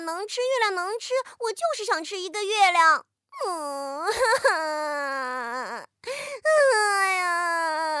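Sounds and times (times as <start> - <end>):
speech: 0.1 - 7.9
acted cry of a mother sobbing sadly in a children's story: 3.3 - 7.9.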